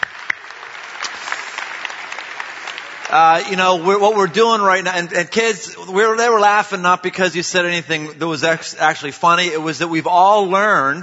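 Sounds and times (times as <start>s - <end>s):
audience applause: 0.0s - 4.3s
speech: 3.1s - 11.0s.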